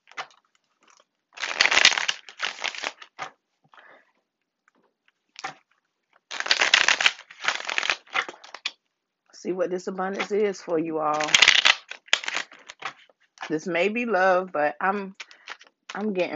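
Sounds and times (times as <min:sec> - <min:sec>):
tarot cards being shuffled and pulled from the deck: 0:00.0 - 0:03.4, 0:05.4 - 0:08.8, 0:10.2 - 0:13.6, 0:15.2 - 0:16.3
speech: 0:09.4 - 0:11.6, 0:13.5 - 0:15.2, 0:16.0 - 0:16.3.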